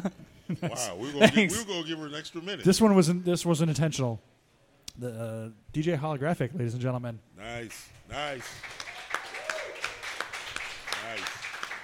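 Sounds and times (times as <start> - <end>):
speech: 0.0 - 4.4, 5.0 - 8.8
audience applause after a song: 8.2 - 11.8
audience cheer: 8.8 - 10.3.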